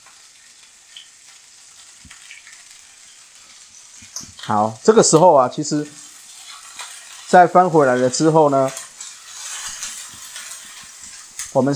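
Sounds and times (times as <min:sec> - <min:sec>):
pieces of squid frying in a pan: 0:00.0 - 0:11.7
speech: 0:04.5 - 0:06.0, 0:07.3 - 0:08.8, 0:11.6 - 0:11.7.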